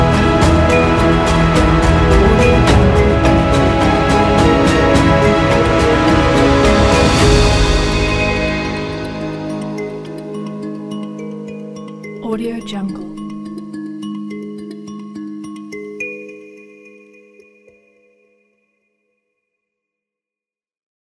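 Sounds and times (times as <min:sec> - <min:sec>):
dark cinematic suspense music: 0:00.0 - 0:11.2.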